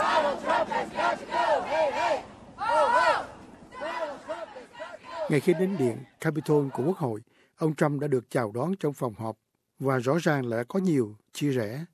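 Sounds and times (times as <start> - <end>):
crowd of protesters chanting: 0.0 - 7.0
speech: 5.3 - 11.9.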